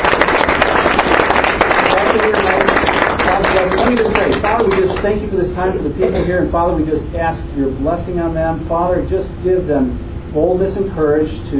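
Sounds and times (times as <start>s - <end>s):
crowd applauding: 0.0s - 5.1s
speech: 5.0s - 11.5s.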